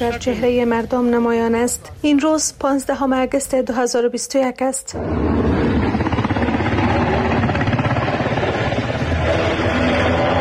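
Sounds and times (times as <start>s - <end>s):
speech: 0.0s - 6.0s
helicopters flying overhead: 4.9s - 10.3s.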